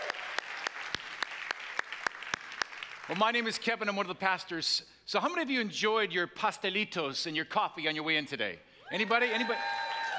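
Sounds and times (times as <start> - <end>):
audience cheering and applause: 0.0 - 3.1, 8.9 - 10.1
speech: 3.1 - 10.1.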